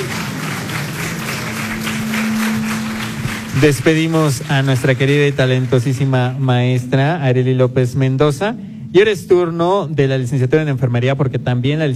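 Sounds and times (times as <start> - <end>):
audience applause: 0.0 - 6.8
speech: 3.6 - 11.9.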